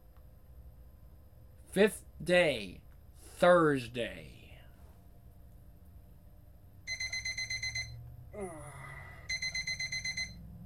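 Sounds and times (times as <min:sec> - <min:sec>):
speech: 0:01.8 - 0:02.8, 0:03.4 - 0:04.4
alarm clock beeping: 0:06.9 - 0:08.0, 0:09.2 - 0:10.5.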